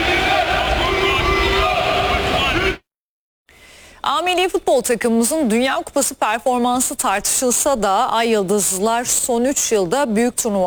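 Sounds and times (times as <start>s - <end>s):
football fans chanting at Turkish national team training in Los Angeles: 0.0s - 2.8s
speech: 4.0s - 10.6s.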